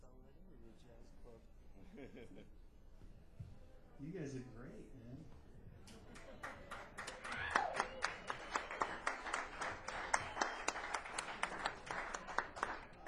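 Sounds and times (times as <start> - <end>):
laughter: 1.8 - 2.6
speech: 1.8 - 2.6, 4.0 - 5.4
audience clapping: 6.1 - 13.0.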